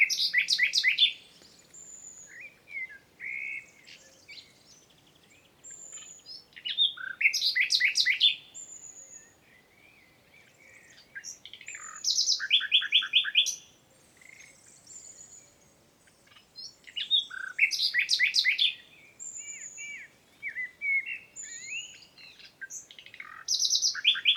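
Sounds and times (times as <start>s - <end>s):
common nightingale Luscinia megarhynchos singing: 0.0s - 24.3s.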